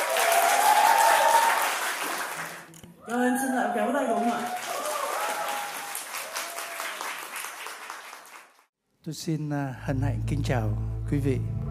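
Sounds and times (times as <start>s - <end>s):
audience applause welcoming a musician on stage: 0.0s - 2.7s, 3.8s - 8.7s
speech: 9.0s - 11.6s.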